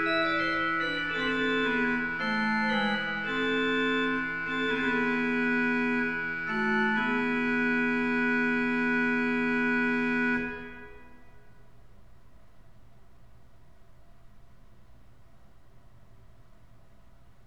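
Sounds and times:
organ chorale prelude: 0.0s - 11.5s.

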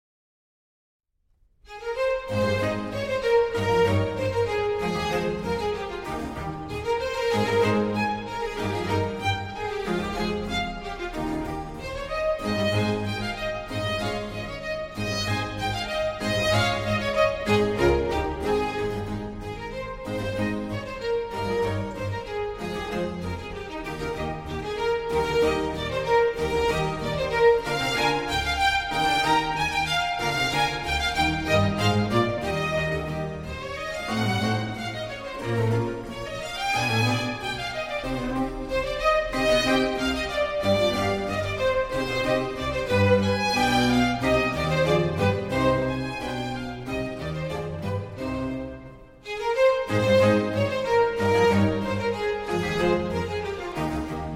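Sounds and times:
string orchestra with continuo playing an allegro: 1.5s - 54.3s.

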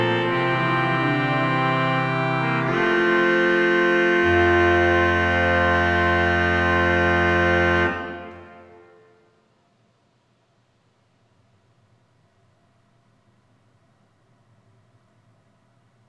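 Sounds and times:
organ chorale prelude: 0.0s - 9.1s.

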